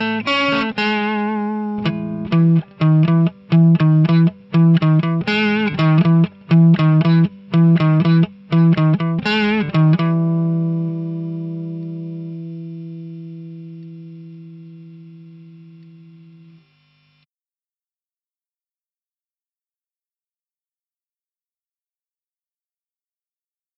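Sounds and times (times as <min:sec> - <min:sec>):
clean electric guitar through amp: 0:00.0 - 0:16.6.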